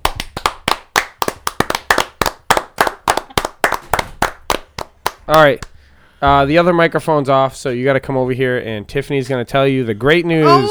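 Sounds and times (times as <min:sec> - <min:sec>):
round of applause: 0:00.0 - 0:05.2
speech: 0:05.3 - 0:10.6.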